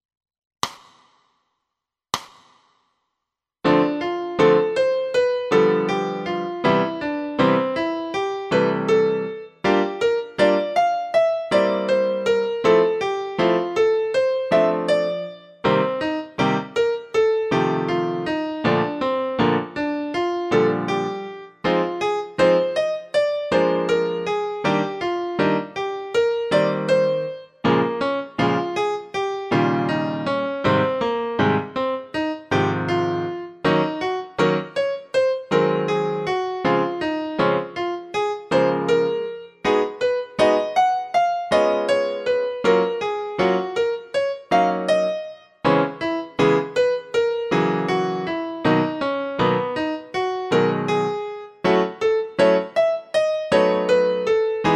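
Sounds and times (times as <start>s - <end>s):
piano: 3.6s - 54.7s.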